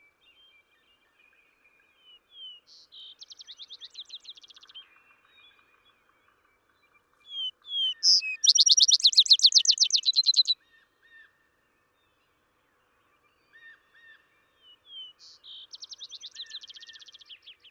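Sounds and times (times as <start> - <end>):
Vesper sparrow songs of slurred whistles and a fast bright trill: 0.0 - 6.0, 6.8 - 10.6, 13.3 - 17.6.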